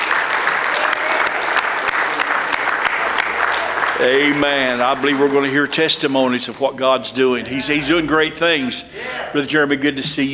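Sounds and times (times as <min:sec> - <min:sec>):
crowd hand-clapping applause: 0:00.0 - 0:06.8
speech: 0:04.0 - 0:10.3.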